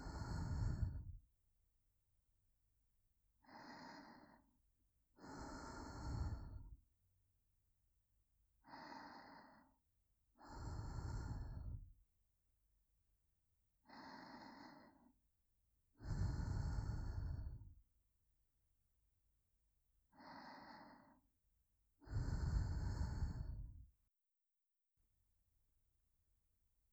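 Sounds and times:
breathing in the right ear: 0:00.0 - 0:01.2, 0:03.4 - 0:06.8, 0:08.6 - 0:12.0, 0:13.9 - 0:15.2, 0:16.0 - 0:17.8, 0:20.1 - 0:21.3, 0:22.0 - 0:24.0.

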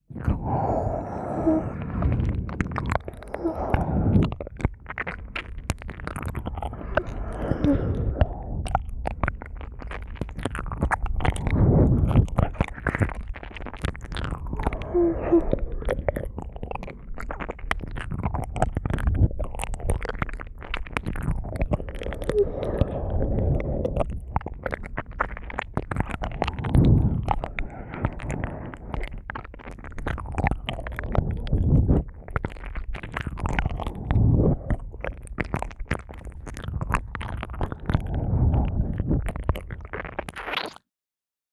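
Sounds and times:
left ear licking sounds: 0:00.1 - 0:40.8.

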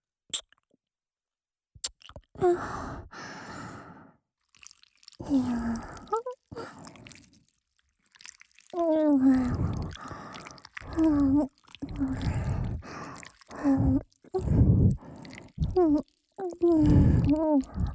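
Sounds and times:
ear licking sounds in the right ear: 0:04.5 - 0:17.9.

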